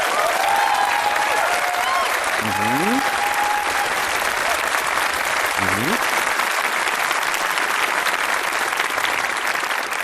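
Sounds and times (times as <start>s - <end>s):
crowd whooping: 0.0s - 4.6s
large audience applause: 0.0s - 10.0s.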